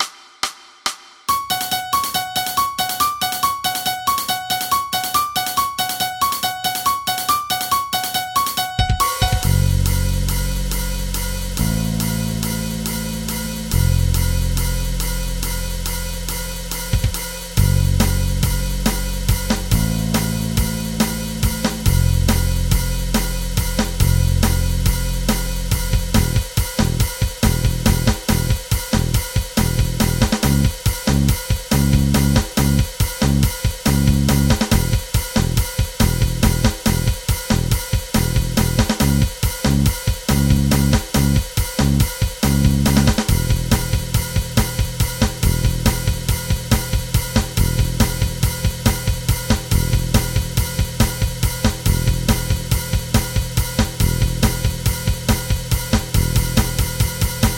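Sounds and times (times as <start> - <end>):
backing music: 0.0 - 57.5.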